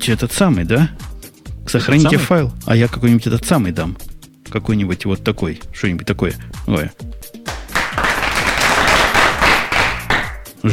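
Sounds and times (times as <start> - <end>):
speech: 0.0 - 1.1, 1.7 - 7.2
applause sound effect: 7.5 - 10.5.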